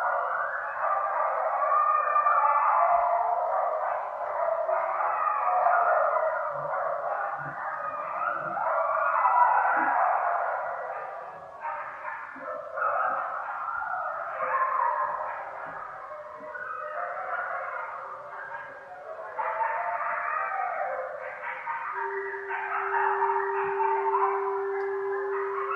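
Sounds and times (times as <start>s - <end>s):
coyote howling: 0.0s - 25.7s.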